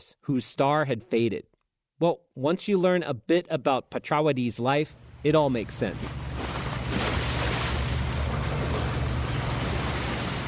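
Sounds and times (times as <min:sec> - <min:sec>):
speech: 0:00.0 - 0:06.2
motorboat engine drone on river: 0:05.0 - 0:10.4
river water: 0:05.0 - 0:10.4
wind: 0:05.0 - 0:10.4.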